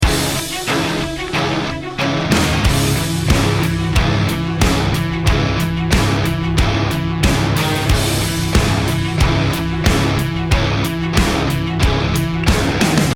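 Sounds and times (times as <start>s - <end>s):
music: 0.0s - 13.1s.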